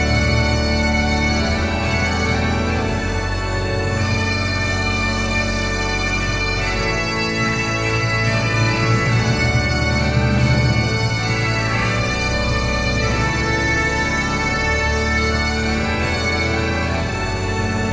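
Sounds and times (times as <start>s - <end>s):
bagpipes: 0.0s - 17.9s.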